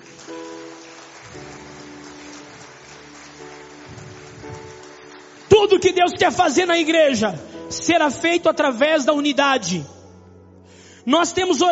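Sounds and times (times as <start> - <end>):
audience applauding: 0.0 - 6.9
speech: 5.6 - 10.0, 11.1 - 11.6.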